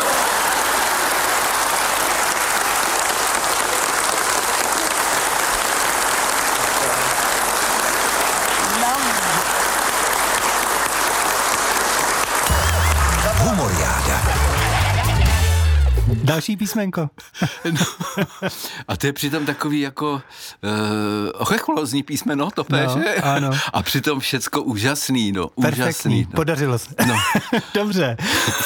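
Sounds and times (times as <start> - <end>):
audience applause: 0.0 - 16.1
laughter: 6.6 - 9.6, 12.4 - 16.1, 17.4 - 18.6, 22.7 - 23.6, 27.0 - 28.6
speech: 16.4 - 28.6.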